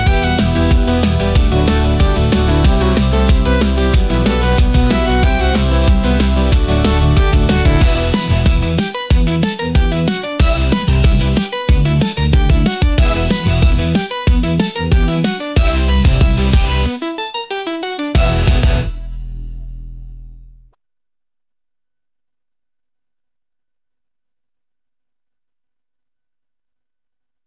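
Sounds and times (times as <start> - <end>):
1980s pop rock music: 0.0 - 19.2.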